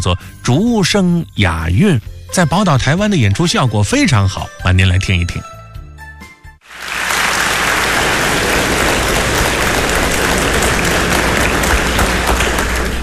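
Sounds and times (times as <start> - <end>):
speech: 0.0 - 5.5
audience applause: 6.6 - 13.0
audience laughter: 7.3 - 13.0.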